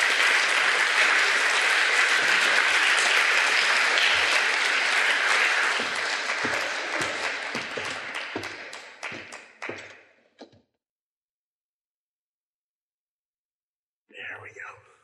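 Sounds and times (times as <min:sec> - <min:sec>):
crowd applause: 0:00.0 - 0:10.0.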